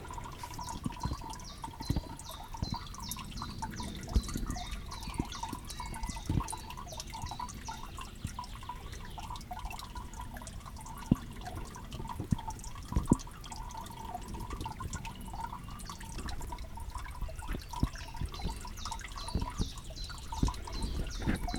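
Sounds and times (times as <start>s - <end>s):
water dripping: 0.0s - 21.5s.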